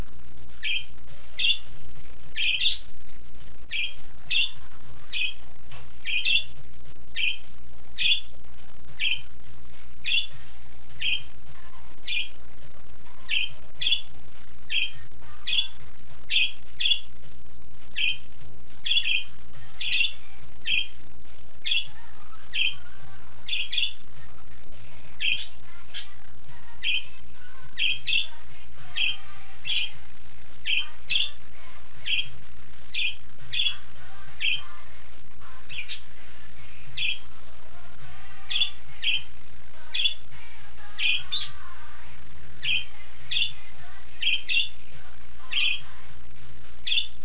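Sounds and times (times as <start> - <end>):
parakeet chirping: 0.6 - 1.7, 2.4 - 2.9, 3.7 - 5.4, 6.0 - 8.3, 9.0 - 9.3, 10.0 - 10.4, 11.0 - 11.3, 12.0 - 12.4, 13.2 - 14.1, 14.7 - 17.1, 17.9 - 21.0, 21.6 - 24.0, 25.2 - 26.2, 27.8 - 30.0, 30.6 - 31.4, 32.0 - 32.3, 32.9 - 33.8, 34.4 - 34.8, 35.7 - 36.1, 37.0 - 37.3, 38.5 - 39.3, 39.9 - 40.2, 41.0 - 41.7, 42.6 - 43.6, 44.2 - 44.8, 45.5 - 45.9, 46.8 - 47.2.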